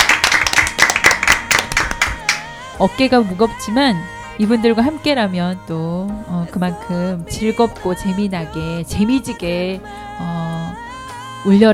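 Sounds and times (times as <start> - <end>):
small audience clapping at a local community event: 0.0 - 2.5
speech: 2.8 - 10.4, 11.4 - 11.7.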